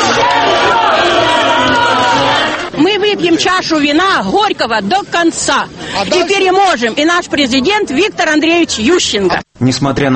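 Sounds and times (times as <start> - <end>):
roughly 2000 supporters cheering and applauding outside the Central Election Commission building: 0.0 - 2.8
speech: 3.3 - 10.1.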